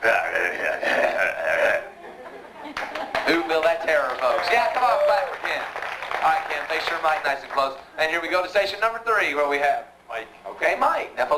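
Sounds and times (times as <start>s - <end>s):
man's voice imitating a sinister monster growl: 0.0s - 2.0s
laughter: 0.0s - 4.6s
speech: 6.2s - 11.3s.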